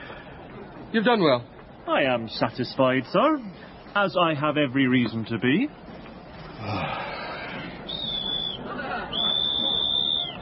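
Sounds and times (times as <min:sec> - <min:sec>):
crowd chatter: 0:00.0 - 0:10.4
speech: 0:00.9 - 0:05.8, 0:06.6 - 0:07.0
police whistle blasts: 0:07.9 - 0:10.4.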